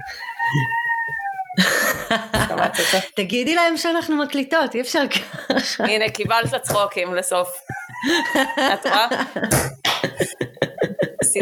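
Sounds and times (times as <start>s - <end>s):
speech: 0.0s - 0.9s, 1.6s - 10.4s
laughter: 1.6s - 3.2s, 5.1s - 6.9s, 7.5s - 11.4s
rooster crowing in the yard: 7.7s - 9.0s.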